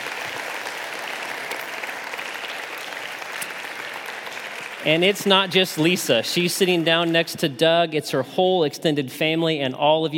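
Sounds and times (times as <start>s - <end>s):
audience applause: 0.0s - 7.2s
speech: 4.8s - 10.1s.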